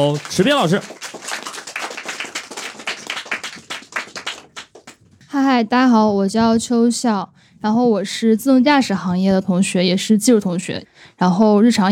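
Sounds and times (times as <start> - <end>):
speech: 0.0 - 1.1, 5.4 - 11.9
audience applause: 0.0 - 5.0.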